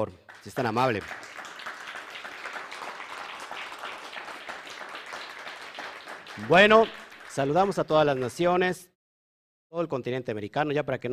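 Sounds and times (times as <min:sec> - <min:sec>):
speech: 0:00.0 - 0:01.4, 0:06.4 - 0:08.9, 0:09.7 - 0:11.1
audience applause: 0:00.3 - 0:08.5.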